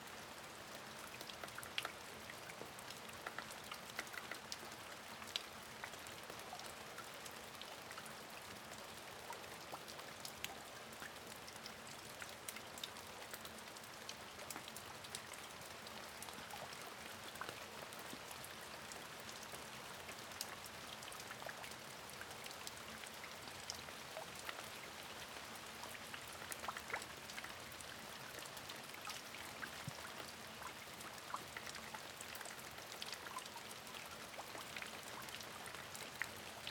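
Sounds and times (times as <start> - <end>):
light rain dripping into a puddle: 0.0 - 36.6.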